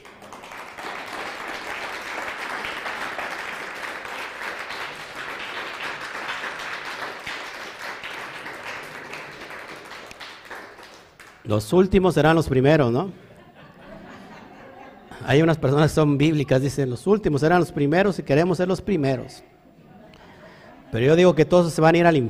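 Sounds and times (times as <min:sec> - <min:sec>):
crowd applause: 0:00.0 - 0:11.4
speech: 0:11.5 - 0:13.2, 0:15.3 - 0:19.5, 0:20.9 - 0:22.2
laughter: 0:13.2 - 0:15.4, 0:19.7 - 0:21.3.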